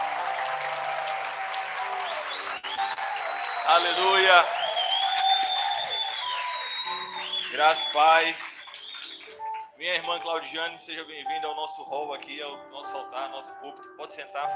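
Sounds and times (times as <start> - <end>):
audience applause: 0.0 - 9.6
speech: 3.7 - 4.6, 7.5 - 8.6, 9.8 - 14.5.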